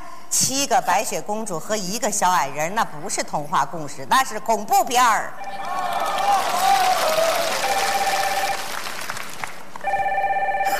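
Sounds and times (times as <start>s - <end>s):
speech: 0.3s - 6.5s
crowd noise: 5.3s - 10.0s
telephone ringing: 7.6s - 8.7s, 9.8s - 10.7s.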